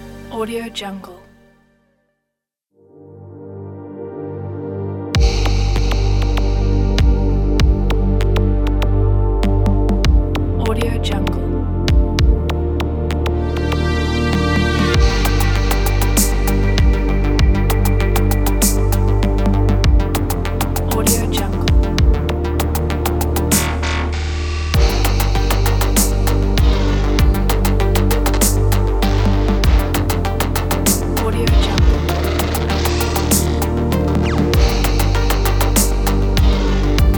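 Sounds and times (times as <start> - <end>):
relaxing electronic ambient music: 0.0 - 1.9, 2.8 - 37.1.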